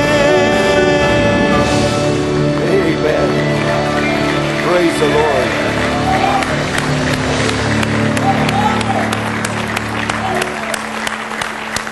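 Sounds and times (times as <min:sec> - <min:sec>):
crowd voices: 0:00.0 - 0:11.7
audience applause: 0:00.0 - 0:11.8.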